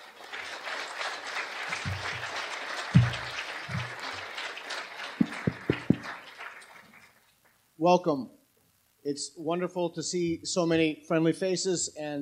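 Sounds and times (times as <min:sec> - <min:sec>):
audience applause: 0:00.0 - 0:07.2
low thumps: 0:01.9 - 0:02.3, 0:03.0 - 0:04.0
speech: 0:07.8 - 0:08.4, 0:09.0 - 0:12.1.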